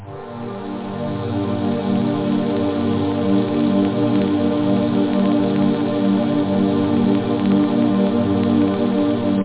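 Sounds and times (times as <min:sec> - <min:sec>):
synth chords: 0:00.0 - 0:09.4.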